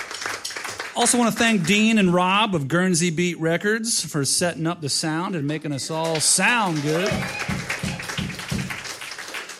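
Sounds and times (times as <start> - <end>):
audience applause: 0.0 - 2.0, 5.9 - 9.5
speech: 1.0 - 7.6.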